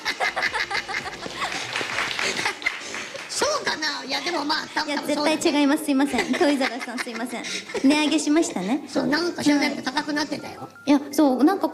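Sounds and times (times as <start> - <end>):
laughter: 0.0 - 3.4, 6.0 - 8.5
applause sound effect: 1.2 - 3.8
speech: 3.8 - 11.7.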